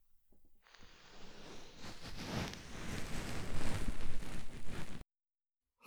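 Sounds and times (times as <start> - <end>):
ASMR ear cleaning on the right ear: 0.8 - 5.0.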